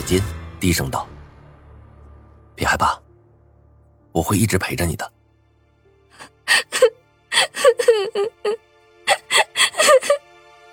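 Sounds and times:
speech: 0:00.1 - 0:01.1, 0:02.6 - 0:03.0, 0:04.2 - 0:05.2, 0:08.0 - 0:08.6
woman crying in gasping sobs: 0:06.2 - 0:10.3.

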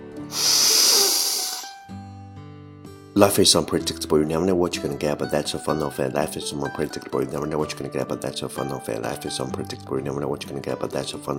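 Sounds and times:
speech: 0:00.3 - 0:00.6, 0:03.2 - 0:11.3
deep breath: 0:00.3 - 0:01.8.

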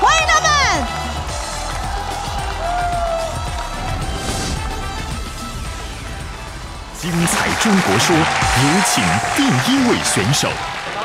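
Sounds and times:
audience applause and cheering: 0:00.0 - 0:11.0
speech: 0:07.6 - 0:10.8.

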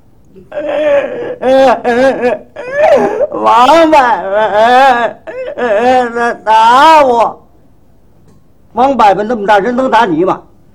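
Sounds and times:
person imitating a child crying: 0:00.4 - 0:07.3
speech: 0:00.4 - 0:07.4, 0:08.8 - 0:10.5.

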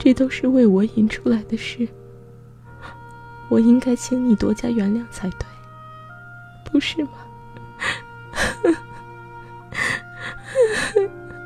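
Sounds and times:
speech: 0:00.0 - 0:02.0, 0:03.5 - 0:05.5, 0:06.7 - 0:07.2, 0:07.8 - 0:08.9
faint steady hum: 0:00.0 - 0:11.4
high wavering whimpers: 0:01.2 - 0:11.4
woman bursting into tears: 0:07.2 - 0:11.4.

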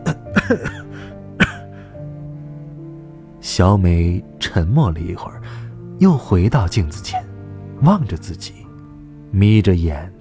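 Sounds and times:
person coughing: 0:00.0 - 0:01.7
speech: 0:00.5 - 0:00.8, 0:03.6 - 0:08.6, 0:09.3 - 0:10.1.

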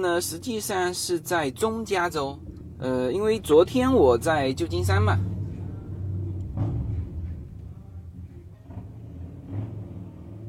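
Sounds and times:
speech: 0:00.0 - 0:05.3
large motorcycle roaring past: 0:02.4 - 0:10.4.

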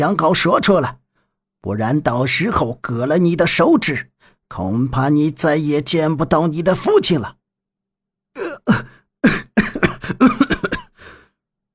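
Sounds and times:
speech: 0:00.0 - 0:01.0, 0:01.6 - 0:07.4, 0:10.1 - 0:10.5
person coughing harshly: 0:08.4 - 0:11.0
wheezy breath: 0:10.9 - 0:11.4.

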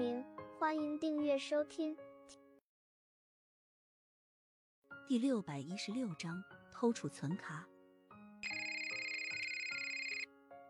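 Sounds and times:
speech: 0:00.6 - 0:02.4, 0:05.1 - 0:07.7
telephone ringing: 0:08.4 - 0:10.3.

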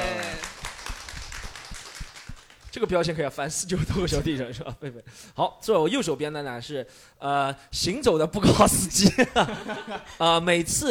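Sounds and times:
audience applause: 0:00.0 - 0:02.7
speech: 0:02.8 - 0:10.8.

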